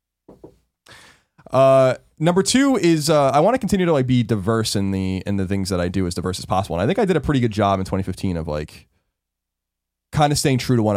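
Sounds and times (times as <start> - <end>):
knocking on wood: 0.3 - 0.6
long breathy exhale: 0.9 - 1.3
speech: 1.5 - 8.9, 10.2 - 10.9.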